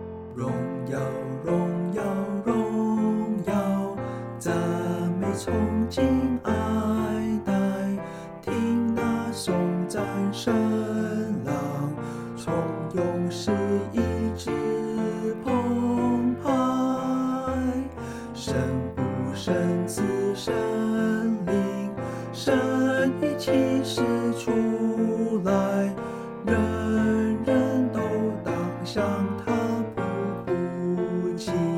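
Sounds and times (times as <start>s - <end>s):
vocals: 0.3s - 31.7s.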